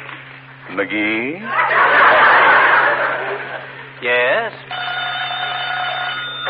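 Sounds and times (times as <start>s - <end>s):
speech: 0.8s - 1.7s
laughter: 1.4s - 4.0s
telephone ringing: 4.7s - 6.4s.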